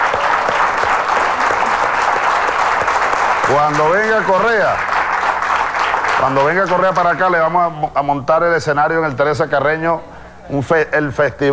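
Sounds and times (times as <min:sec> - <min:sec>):
applause: 0:00.0 - 0:07.4
speech: 0:03.5 - 0:04.9, 0:06.2 - 0:11.5.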